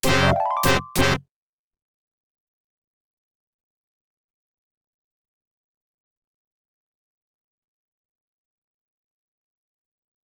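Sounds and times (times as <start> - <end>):
OPL2 FM synth chip music: 0.0 - 1.2.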